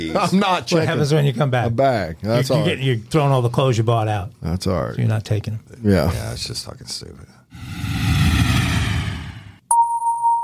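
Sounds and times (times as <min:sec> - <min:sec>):
speech: 0:00.0 - 0:08.0
engine-like roar: 0:07.6 - 0:09.6.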